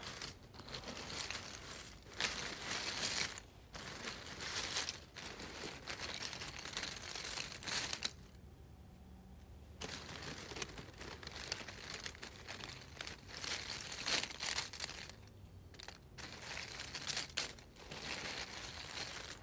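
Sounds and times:
small cardboard pieces shuffling and scraping: 0:00.0 - 0:08.3, 0:09.8 - 0:19.4.

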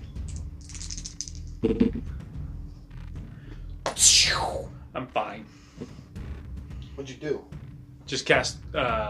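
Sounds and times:
dice rolled on a table during a tabletop role-playing game: 0:00.3 - 0:01.6
speech: 0:01.6 - 0:02.2, 0:04.3 - 0:05.9, 0:07.0 - 0:09.0.

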